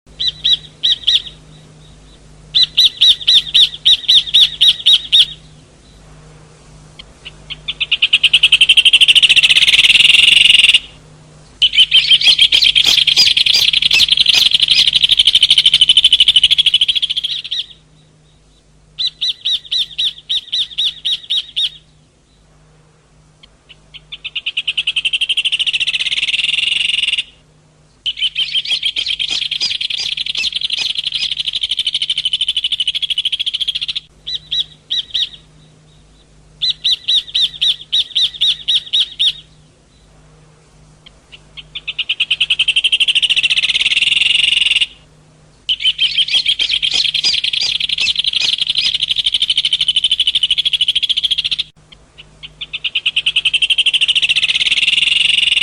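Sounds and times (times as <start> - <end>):
hornero singing: 0.1 - 6.2, 6.9 - 22.6, 23.4 - 40.2, 41.0 - 55.6.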